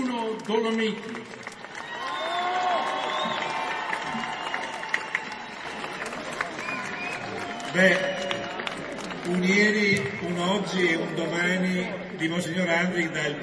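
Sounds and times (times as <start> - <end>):
speech: 0.5 - 1.5, 7.8 - 8.1, 9.3 - 13.4
audience applause: 0.5 - 9.9
voices cheering: 1.7 - 8.9.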